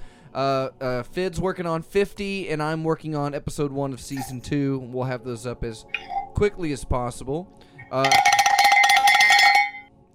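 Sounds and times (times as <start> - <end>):
speech: 0.4 - 8.4
show bell ringing: 7.9 - 9.9.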